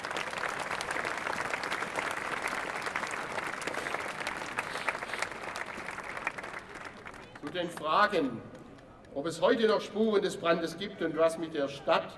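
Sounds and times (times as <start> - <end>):
audience applause: 0.0 - 7.5
speech: 7.6 - 8.6, 9.2 - 12.1.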